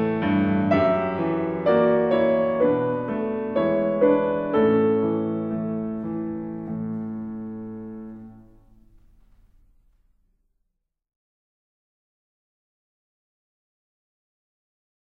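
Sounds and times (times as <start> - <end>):
piano performance: 0.0 - 10.2.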